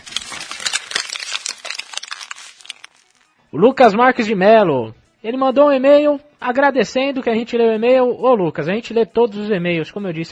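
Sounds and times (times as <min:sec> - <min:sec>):
papers being picked up and shuffled to read out an email: 0:00.0 - 0:03.3
speech: 0:03.5 - 0:10.3.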